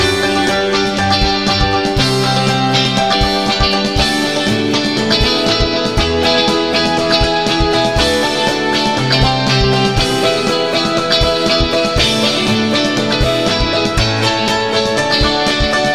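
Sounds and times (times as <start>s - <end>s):
piano music: 0.0s - 15.9s.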